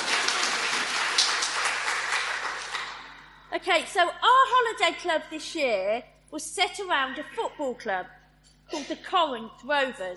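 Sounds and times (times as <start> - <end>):
audience clapping: 0.0 - 3.2
speech: 3.6 - 10.1.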